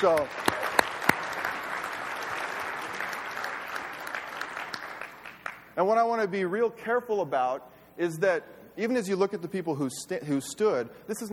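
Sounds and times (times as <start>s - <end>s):
speech: 0.0s - 0.6s, 5.8s - 11.3s
audience applause: 0.0s - 5.7s.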